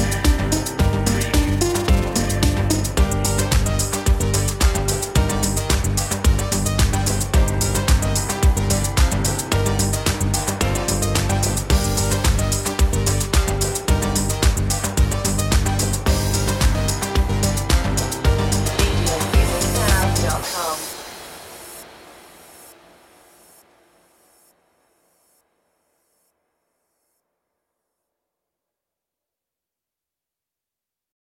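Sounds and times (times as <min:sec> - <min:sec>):
corporate music: 0:00.0 - 0:22.7.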